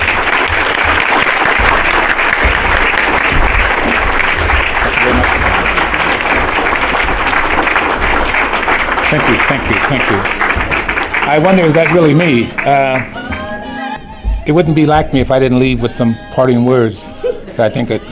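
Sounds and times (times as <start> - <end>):
audience applause: 0.0 - 13.6
speech: 9.1 - 10.5, 11.3 - 13.2, 14.4 - 18.0.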